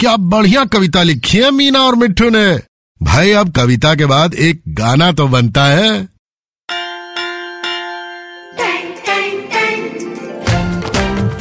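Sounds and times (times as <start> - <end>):
speech: 0.0 - 6.1
school bell ringing: 6.7 - 11.0.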